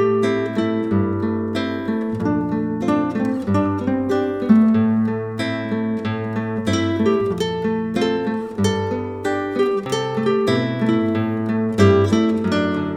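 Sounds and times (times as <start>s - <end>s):
guitar duo playing an easy pop song: 0.0s - 12.9s.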